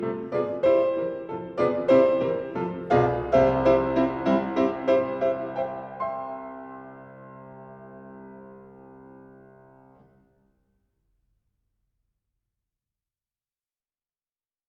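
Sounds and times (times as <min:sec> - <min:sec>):
classical piece: 0:00.0 - 0:10.6.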